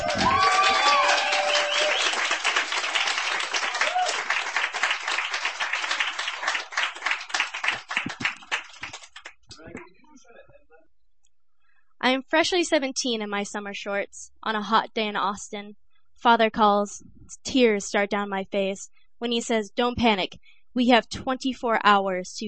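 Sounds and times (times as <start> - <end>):
audience clapping at a reading: 0.0 - 9.9
speech: 12.3 - 22.4.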